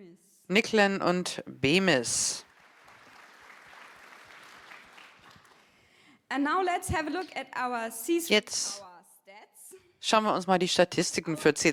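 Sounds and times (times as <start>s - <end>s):
speech: 0.2s - 2.5s, 6.3s - 8.9s, 10.0s - 11.7s
crowd applause: 2.2s - 5.8s.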